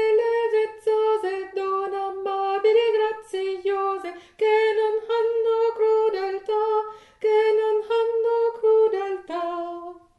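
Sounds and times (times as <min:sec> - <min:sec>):
alto voice singing: 0:00.0 - 0:10.1.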